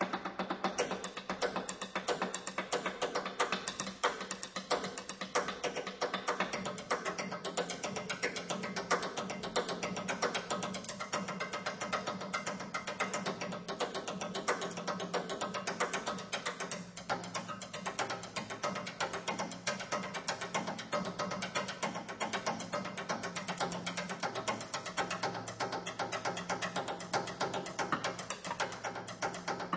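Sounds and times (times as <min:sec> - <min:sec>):
drums: 0:00.0 - 0:29.7.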